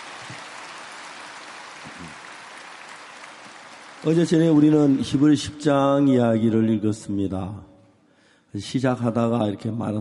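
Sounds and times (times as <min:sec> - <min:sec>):
audience applause: 0:00.0 - 0:05.6
speech: 0:04.0 - 0:07.7, 0:08.5 - 0:10.0.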